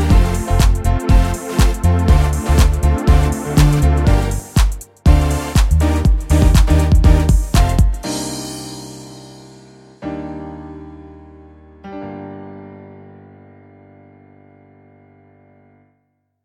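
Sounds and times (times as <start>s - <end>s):
orchestral dance music: 0.0s - 9.9s.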